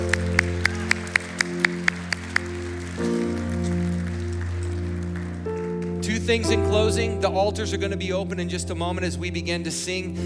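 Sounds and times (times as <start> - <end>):
hand clapping: 0.0 - 6.4
speech: 6.3 - 10.2.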